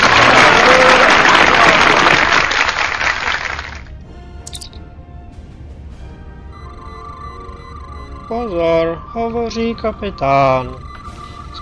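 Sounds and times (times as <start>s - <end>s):
applause: 0.0s - 3.9s
speech: 9.5s - 10.9s.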